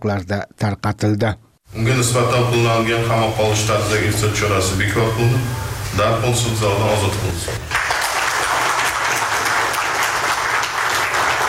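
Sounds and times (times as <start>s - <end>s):
speech: 0.0s - 7.8s
courtroom applause greeting a release decision: 7.5s - 11.4s.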